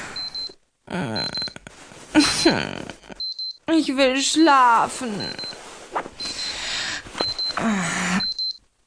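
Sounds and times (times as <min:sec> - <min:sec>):
alarm clock beeping: 0:00.1 - 0:00.5, 0:01.2 - 0:01.5, 0:03.2 - 0:03.6, 0:05.2 - 0:05.5, 0:06.2 - 0:08.6
person groaning: 0:00.9 - 0:03.1
speech: 0:02.2 - 0:02.9, 0:03.7 - 0:05.5, 0:07.6 - 0:08.0
rustling: 0:05.3 - 0:07.6.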